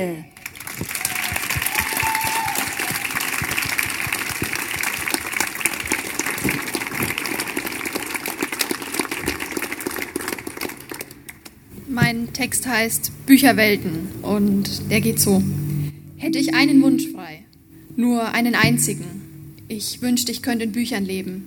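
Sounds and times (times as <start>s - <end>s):
speech: 0.0s - 1.0s, 12.0s - 15.6s, 16.2s - 17.4s, 18.0s - 21.4s
audience applause: 0.4s - 11.5s.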